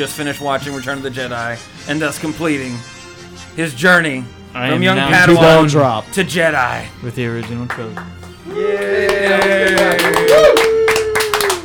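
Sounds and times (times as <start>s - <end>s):
speech: 0.0s - 10.7s
hands clapping in applause: 7.4s - 11.6s.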